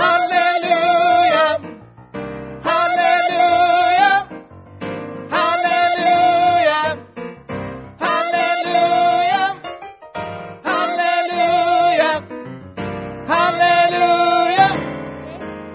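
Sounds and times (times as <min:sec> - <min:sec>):
tenor singing: 0:00.0 - 0:01.8, 0:02.6 - 0:04.4, 0:05.2 - 0:07.1, 0:07.9 - 0:09.8, 0:10.6 - 0:12.4, 0:13.2 - 0:15.4.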